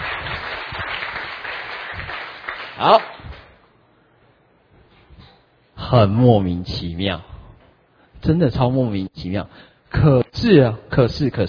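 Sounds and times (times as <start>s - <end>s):
audience applause for a participant returning to their seat: 0.0s - 3.2s
speech: 2.8s - 3.2s, 5.9s - 7.3s, 8.2s - 11.4s.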